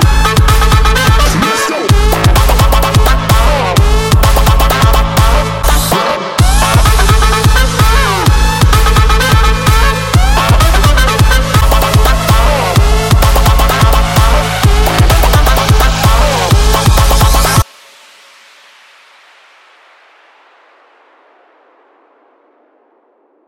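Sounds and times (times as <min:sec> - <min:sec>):
saxophone: 0:00.0 - 0:17.7.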